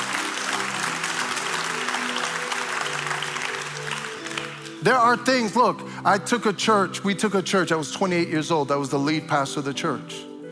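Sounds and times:
audience clapping: 0.0s - 5.1s
speech: 4.8s - 10.3s.

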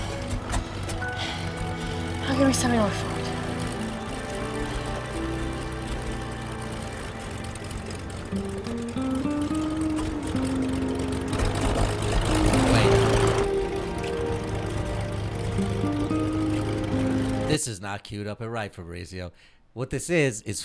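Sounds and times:
aircraft engine droning in a film clip: 0.0s - 17.6s
speech: 2.3s - 3.2s, 17.6s - 20.6s.

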